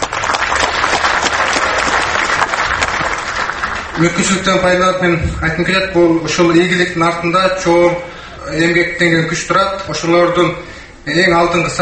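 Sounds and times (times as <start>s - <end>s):
audience in Kyrgyzstan applauding a film prize winner at an awards event: 0.0s - 4.7s
speech: 4.0s - 11.8s.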